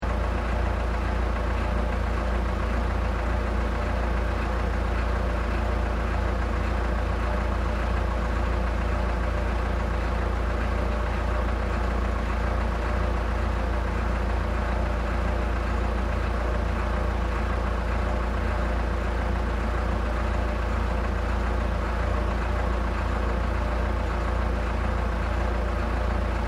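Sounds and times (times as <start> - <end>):
road roller idling at road construction in Sannohe: 0.0 - 26.4.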